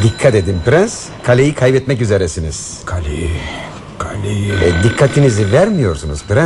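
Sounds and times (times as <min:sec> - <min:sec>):
telephone ringing: 0:00.0 - 0:02.1, 0:04.2 - 0:06.4
speech: 0:00.0 - 0:06.4.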